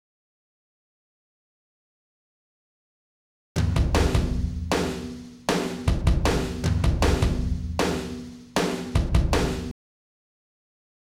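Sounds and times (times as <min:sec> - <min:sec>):
drum kit: 0:03.6 - 0:09.7.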